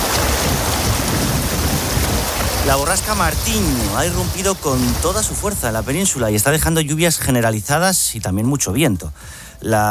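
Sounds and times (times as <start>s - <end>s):
swollen river rushing past a city: 0.0s - 7.4s
speech: 2.7s - 9.9s.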